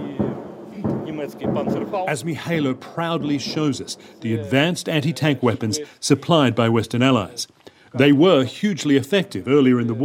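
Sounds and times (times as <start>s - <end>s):
incoming artillery fire booming: 0.0s - 4.2s
speech: 1.2s - 10.0s.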